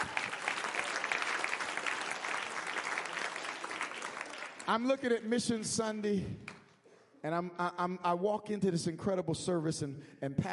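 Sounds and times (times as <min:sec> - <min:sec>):
audience clapping hands: 0:00.0 - 0:05.4
speech: 0:04.7 - 0:06.5, 0:07.2 - 0:10.5.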